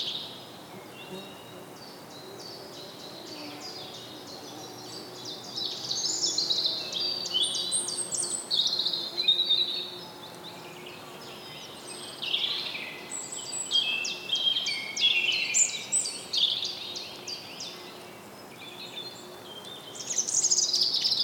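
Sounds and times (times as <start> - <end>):
forest ambience: 0.0 - 21.2.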